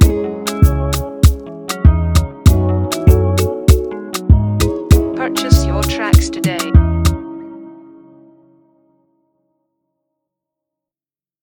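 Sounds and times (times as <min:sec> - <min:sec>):
afrobeat instrumental music: 0:00.0 - 0:08.4.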